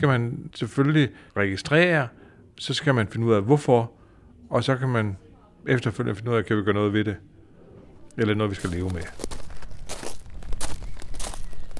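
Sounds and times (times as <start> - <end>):
speech: 0.0 - 7.3, 8.2 - 9.3
footsteps walking toward an old theatre hall building: 8.2 - 11.7.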